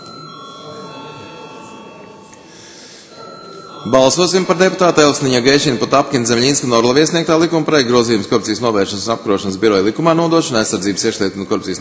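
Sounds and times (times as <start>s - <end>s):
parliament voting bell ringing: 0.0s - 7.9s
speech: 3.8s - 11.7s.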